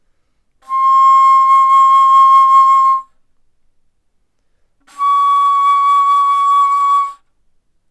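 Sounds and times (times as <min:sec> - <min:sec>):
bass flute playing fortissimo: 0:00.6 - 0:03.1, 0:04.9 - 0:07.2.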